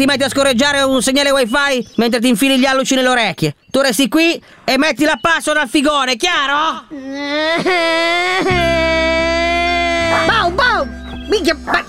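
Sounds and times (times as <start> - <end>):
speech: 0.0 - 9.1, 11.3 - 11.8
adult crying and whimpering: 6.8 - 10.6.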